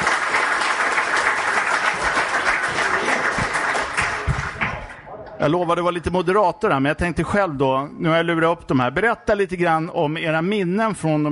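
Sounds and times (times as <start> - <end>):
crowd applauding: 0.0 - 5.0
speech: 5.4 - 11.3.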